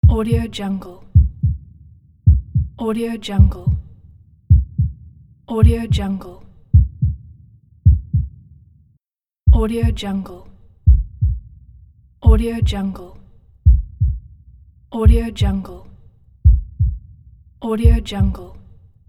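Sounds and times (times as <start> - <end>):
heart pulse: 0.0 - 0.5, 1.2 - 2.8, 3.4 - 3.9, 4.5 - 6.1, 6.7 - 8.4, 9.5 - 10.0, 10.9 - 12.8, 13.6 - 15.6, 16.4 - 18.4.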